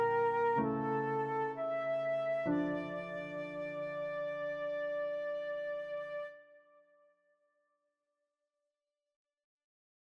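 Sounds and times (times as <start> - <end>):
sad ballad melody: 0.0 - 6.4.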